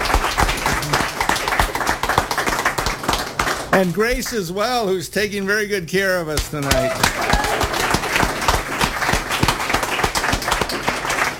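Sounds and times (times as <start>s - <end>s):
audience applause: 0.0s - 4.1s, 6.6s - 11.3s
speech: 3.8s - 7.6s.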